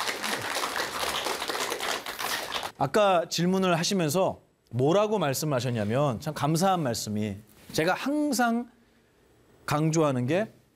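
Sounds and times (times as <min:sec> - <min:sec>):
crowd clapping: 0:00.0 - 0:02.8
speech: 0:02.8 - 0:08.8, 0:09.7 - 0:10.6.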